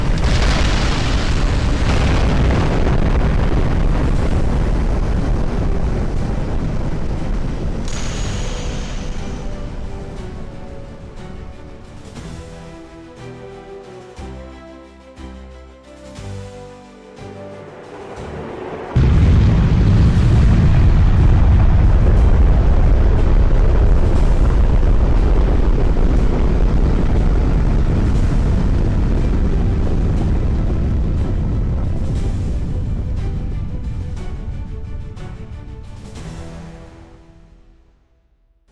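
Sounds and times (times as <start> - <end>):
missile launch: 0.0 - 10.9, 18.2 - 32.9.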